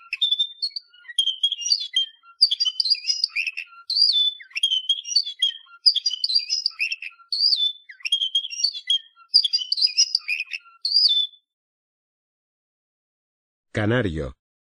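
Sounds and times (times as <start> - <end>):
canary singing: 0.0 - 11.5.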